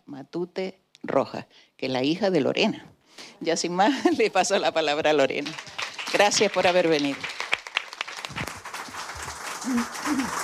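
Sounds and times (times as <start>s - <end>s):
speech: 0.2s - 7.4s, 9.7s - 10.2s
audience applause: 5.4s - 10.4s.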